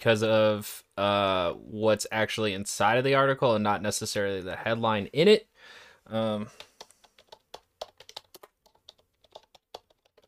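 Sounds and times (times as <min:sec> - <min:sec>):
speech: 0:00.0 - 0:06.7
typing on a computer keyboard: 0:06.5 - 0:10.2.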